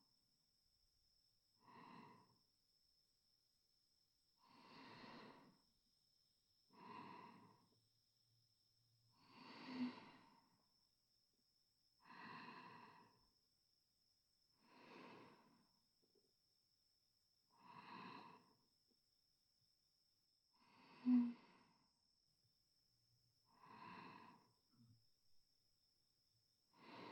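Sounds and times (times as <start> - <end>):
sleeping breath: 1.6 - 2.4, 4.4 - 5.6, 6.8 - 7.8, 9.2 - 10.6, 12.0 - 13.2, 14.6 - 15.7, 17.6 - 18.6, 20.6 - 21.8, 23.6 - 24.6, 26.8 - 27.1.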